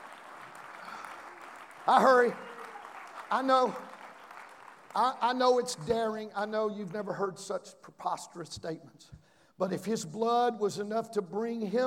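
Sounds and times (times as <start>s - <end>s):
audience clapping hands: 0.0s - 6.0s
speech: 1.9s - 2.5s, 3.3s - 3.9s, 5.0s - 11.8s.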